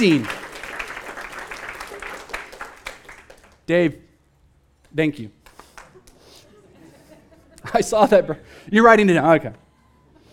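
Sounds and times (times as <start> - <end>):
speech: 0.0 - 0.4, 3.7 - 4.0, 4.9 - 5.4, 7.7 - 9.6
audience applause: 0.0 - 3.6
laughter: 5.9 - 8.5.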